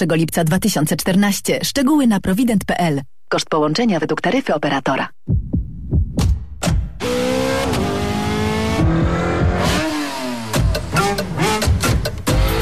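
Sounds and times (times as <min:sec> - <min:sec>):
speech: 0:00.0 - 0:05.6, 0:07.0 - 0:07.4
car engine revving: 0:07.0 - 0:12.6.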